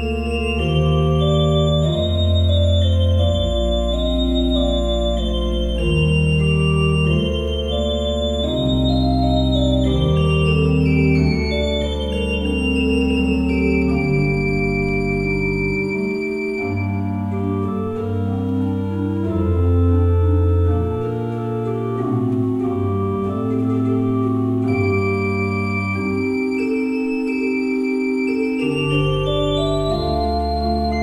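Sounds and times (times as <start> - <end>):
pipe organ: 0.0 - 31.0.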